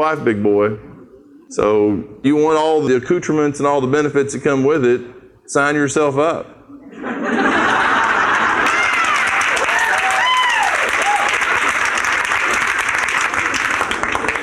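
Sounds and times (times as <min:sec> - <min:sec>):
speech: 0:00.0 - 0:00.9, 0:01.5 - 0:06.6
laughter: 0:06.8 - 0:09.0
audience applause: 0:07.6 - 0:14.4
whoops and cheers: 0:08.5 - 0:11.8.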